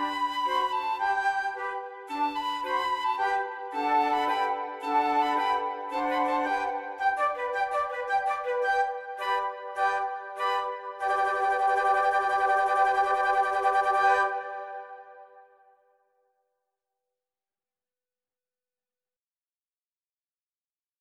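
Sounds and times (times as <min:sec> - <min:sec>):
flute quartet playing: 0:00.0 - 0:15.1.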